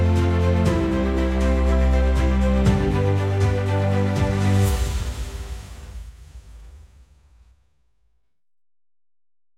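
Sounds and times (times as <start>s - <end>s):
majestic music: 0.0s - 7.3s.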